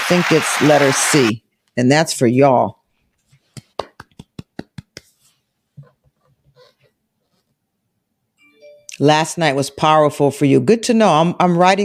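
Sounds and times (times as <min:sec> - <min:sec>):
speech: 0:00.1 - 0:02.8, 0:09.0 - 0:11.8
clapping sound effect: 0:03.5 - 0:05.2.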